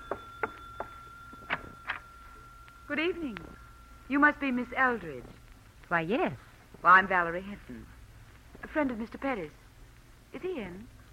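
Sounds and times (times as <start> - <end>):
front door bell ringing: 0.0 - 5.5
thin steady high-pitched tone: 0.0 - 5.6
speech: 2.9 - 7.9, 8.7 - 9.6, 10.3 - 11.0.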